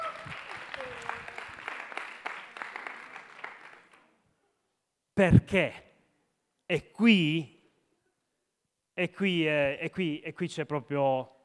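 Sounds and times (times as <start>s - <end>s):
audience applause at a meeting: 0.0s - 4.1s
speech: 5.2s - 5.9s, 6.7s - 7.5s, 9.0s - 11.4s.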